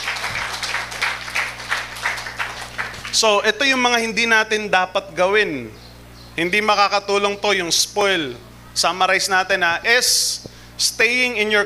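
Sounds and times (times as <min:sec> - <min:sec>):
church congregation clapping in praise to the Lord: 0:00.0 - 0:03.3
low constant hum: 0:00.0 - 0:11.6
speech: 0:03.1 - 0:05.8, 0:06.4 - 0:11.6.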